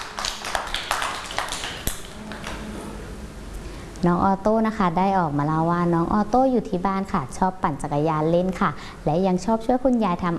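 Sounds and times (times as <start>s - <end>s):
children clapping: 0.0s - 2.7s
speech: 4.0s - 10.3s.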